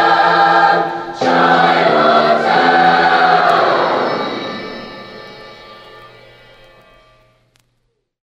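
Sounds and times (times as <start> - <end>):
junior high school choir: 0.0 - 6.2
dance band playing: 0.0 - 6.3.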